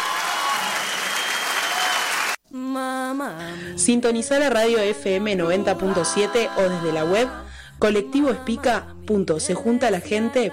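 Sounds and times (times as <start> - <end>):
audience applause: 0.0 - 2.4
speech: 3.3 - 10.5.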